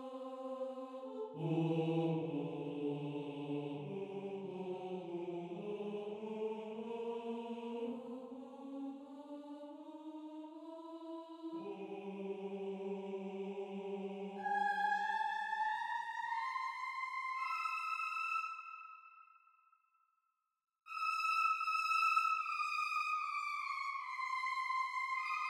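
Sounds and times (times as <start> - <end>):
choir singing: 0.0 - 19.0, 21.4 - 25.4.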